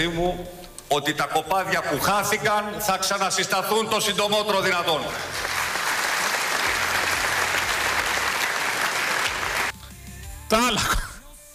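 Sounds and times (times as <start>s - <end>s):
speech: 0.0s - 5.5s, 10.5s - 11.0s
audience applause: 5.1s - 9.8s.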